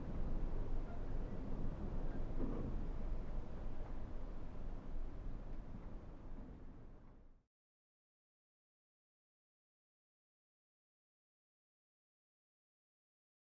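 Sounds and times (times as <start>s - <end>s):
wind inside a dilapidated shack: 0.0s - 7.5s.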